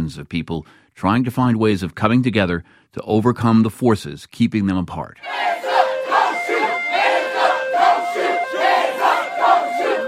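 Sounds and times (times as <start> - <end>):
speech: 0.1 - 5.8
crowd shouting at a night protest in Charlotte, North Carolina: 5.2 - 10.0.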